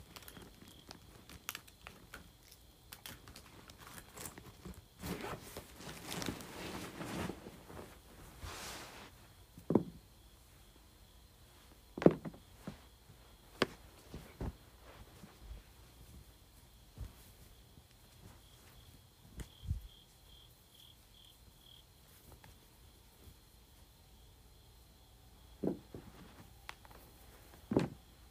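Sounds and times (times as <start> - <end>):
scraping and rustling: 3.1 - 9.3, 11.5 - 19.5, 25.6 - 28.1
items being moved around, knocking: 9.6 - 10.0, 12.0 - 12.8.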